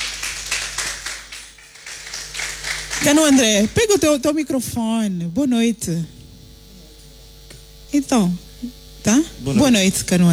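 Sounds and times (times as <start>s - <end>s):
audience clapping at a live music performance: 0.0s - 4.0s
speech: 3.0s - 6.2s, 7.9s - 10.3s.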